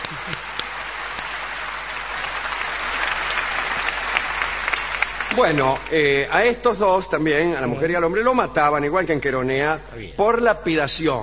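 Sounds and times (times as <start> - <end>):
audience applause: 0.0 - 6.4
speech: 5.4 - 11.2.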